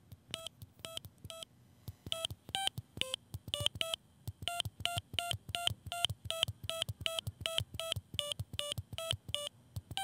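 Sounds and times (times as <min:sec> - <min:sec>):
low hum: 0:00.0 - 0:10.0
short electronic beeps at shifting pitches playing a tune: 0:02.1 - 0:10.0.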